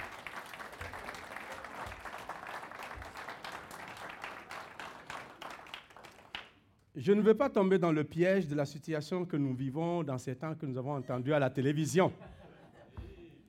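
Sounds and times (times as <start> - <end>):
church congregation applauding women and mothers on Mother's Day: 0.0 - 6.6
speech: 7.0 - 12.4
laughter: 12.1 - 13.4.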